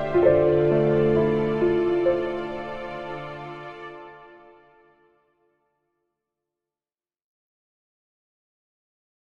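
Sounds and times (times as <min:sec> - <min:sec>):
background music: 0:00.0 - 0:05.8.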